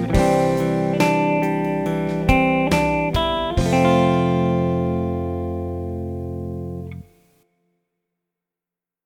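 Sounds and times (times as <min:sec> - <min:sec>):
F major chord: 0:00.0 - 0:07.1.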